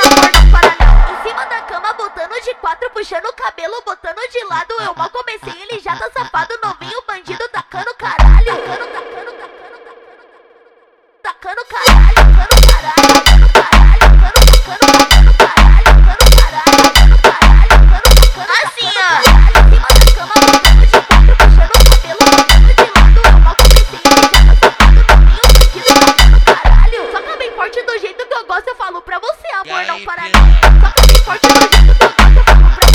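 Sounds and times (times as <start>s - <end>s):
phonk music: 0.0s - 2.4s, 11.8s - 32.9s.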